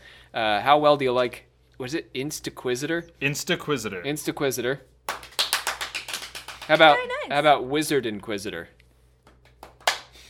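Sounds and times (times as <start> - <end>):
low hum: 0.0 - 10.2
speech: 0.3 - 4.9, 6.7 - 8.8
single hand clap: 5.1 - 6.9, 9.3 - 10.2.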